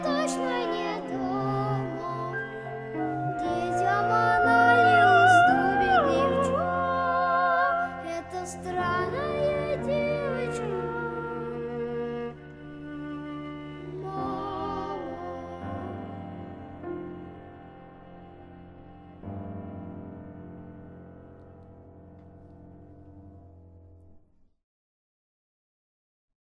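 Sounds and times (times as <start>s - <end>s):
child soprano singing: 0.0s - 12.2s, 13.6s - 16.7s
alto singing: 0.0s - 17.3s
cello playing: 0.0s - 20.3s
piano playing: 0.0s - 23.7s.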